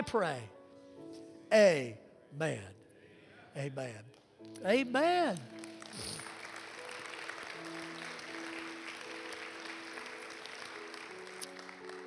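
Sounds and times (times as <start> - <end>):
speech: 0.1 - 2.8, 3.6 - 6.2
audience clapping: 4.0 - 12.0.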